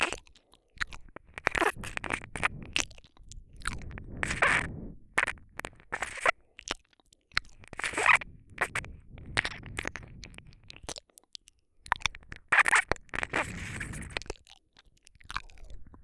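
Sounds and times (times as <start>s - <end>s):
ear licking ASMR: 0.0s - 16.0s
ear cleaning ASMR: 1.2s - 2.9s, 3.8s - 6.3s, 7.6s - 10.7s.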